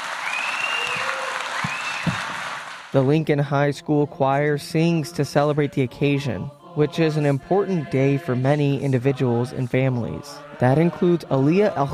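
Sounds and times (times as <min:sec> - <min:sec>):
theater audience applause: 0:00.0 - 0:02.9
speech: 0:02.9 - 0:11.9.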